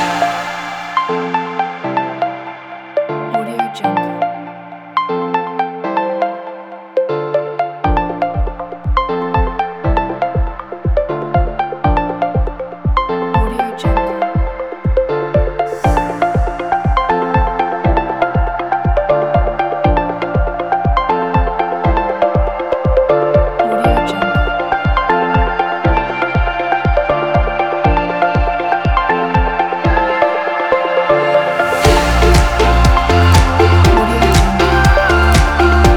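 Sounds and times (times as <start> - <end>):
upbeat pop music: 0.0 - 35.9.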